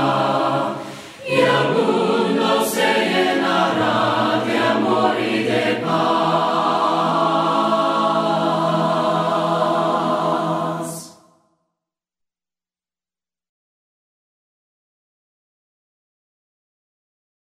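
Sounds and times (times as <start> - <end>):
voices singing hymns a cappella: 0.0 - 11.2.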